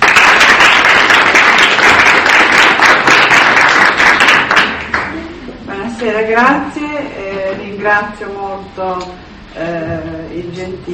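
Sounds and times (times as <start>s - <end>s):
audience applause: 0.0s - 5.3s
speech: 6.4s - 6.8s, 7.8s - 10.9s.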